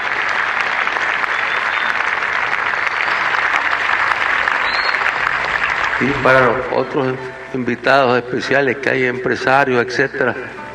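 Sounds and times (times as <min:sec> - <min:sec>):
crowd applauding at a formal ceremony attended by diplomats: 0:00.0 - 0:07.9
speech: 0:06.0 - 0:10.6.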